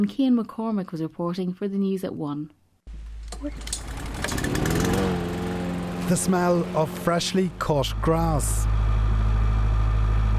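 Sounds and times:
speech: 0.0s - 2.6s, 3.4s - 3.8s, 6.1s - 8.8s
electrical generators buzzing at an outdoor venue: 2.9s - 10.3s.

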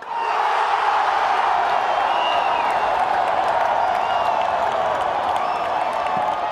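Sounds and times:
football stadium crowd cheering and shouting: 0.0s - 6.4s
faint whistles in a stadium crowd: 1.7s - 6.4s.

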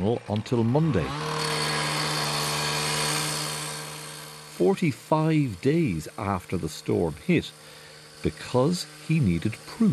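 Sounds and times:
speech: 0.0s - 1.2s, 4.6s - 9.9s
chainsaw cutting: 0.0s - 9.9s.

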